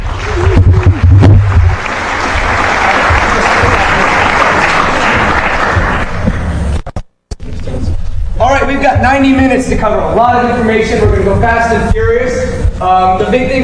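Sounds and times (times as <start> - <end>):
audience applause welcoming the HoneyNet project speakers: 0.0 - 6.6
speech: 8.8 - 13.6.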